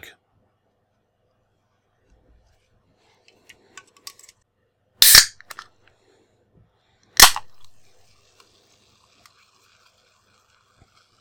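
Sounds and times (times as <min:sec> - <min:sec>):
can of Coca-Cola opening with a fizzing hiss: 0:05.0 - 0:05.7, 0:07.2 - 0:11.2.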